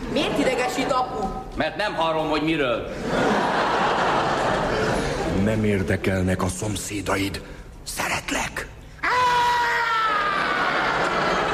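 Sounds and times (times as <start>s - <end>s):
speech: 0.2s - 3.8s, 5.4s - 8.1s
laughter: 2.9s - 5.5s, 10.1s - 11.5s
person screaming: 9.0s - 10.7s.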